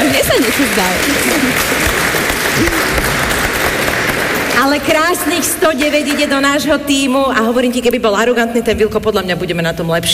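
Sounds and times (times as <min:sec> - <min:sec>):
group applause: 0:00.0 - 0:06.3
speech: 0:04.8 - 0:10.1.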